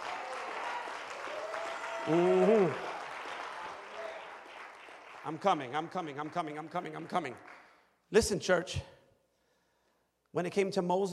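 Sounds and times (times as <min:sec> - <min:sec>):
audience applauding, hand clapping: 0:00.0 - 0:08.3
speech: 0:02.0 - 0:02.8, 0:05.2 - 0:09.0, 0:10.3 - 0:11.1.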